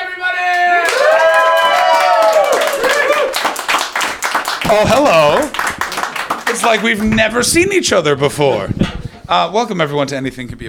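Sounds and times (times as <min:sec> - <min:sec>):
excited whoops and cheers: 0:00.5 - 0:03.6
audience applause: 0:00.8 - 0:07.4
speech: 0:04.7 - 0:05.6, 0:06.5 - 0:10.6.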